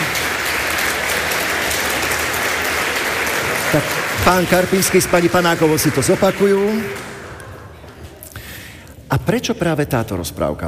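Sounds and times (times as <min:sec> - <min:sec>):
audience applause: 0:00.0 - 0:08.3
speech: 0:03.7 - 0:07.0, 0:09.2 - 0:10.6.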